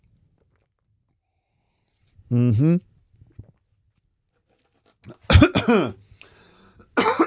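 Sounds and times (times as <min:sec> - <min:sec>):
speech: 0:02.3 - 0:02.9
person coughing after tea went down the wrong way: 0:05.1 - 0:06.0, 0:06.9 - 0:07.2
throat clearing: 0:05.1 - 0:06.0, 0:07.0 - 0:07.2.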